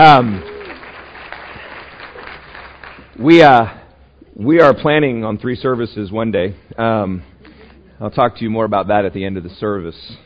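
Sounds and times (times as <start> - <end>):
speech: 0.0 - 0.5, 3.2 - 3.8, 4.4 - 7.3, 8.0 - 10.2
audience applause: 0.0 - 3.2.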